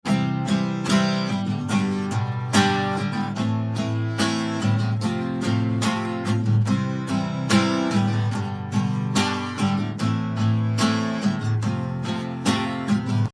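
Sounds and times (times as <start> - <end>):
acoustic guitar: 0.0 - 13.3.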